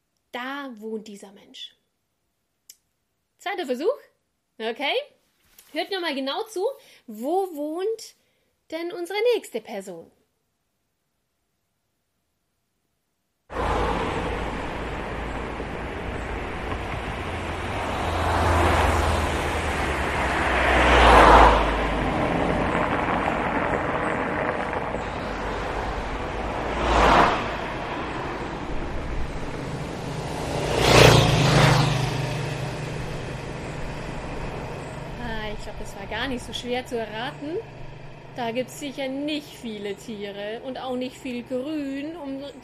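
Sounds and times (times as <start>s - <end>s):
speech: 0.4s - 1.8s, 3.4s - 10.2s, 36.3s - 37.8s, 38.4s - 42.6s
big city street traffic roar: 13.5s - 42.6s.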